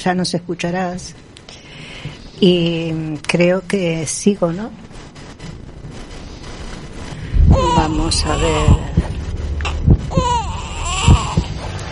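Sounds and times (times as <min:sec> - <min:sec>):
speech: 0:00.0 - 0:01.3, 0:02.0 - 0:04.9, 0:07.8 - 0:09.0
soft low thuds: 0:07.2 - 0:11.7
infant crying: 0:07.5 - 0:09.0, 0:09.6 - 0:11.6.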